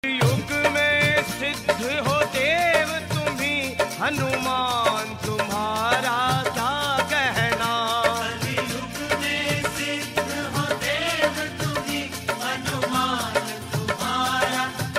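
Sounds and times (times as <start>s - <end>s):
Hanuman devotional bhajan song: 0.0s - 14.9s.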